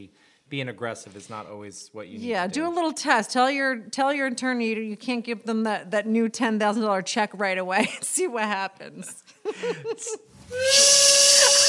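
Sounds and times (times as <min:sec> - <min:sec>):
speech: 0:00.0 - 0:11.1
laughter: 0:09.4 - 0:10.3, 0:10.9 - 0:11.6
train steam whistle: 0:10.5 - 0:11.6.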